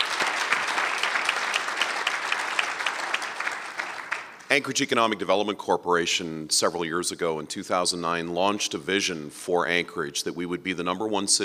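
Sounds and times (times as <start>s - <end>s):
group applauding: 0.0s - 4.6s
speech: 4.5s - 11.4s.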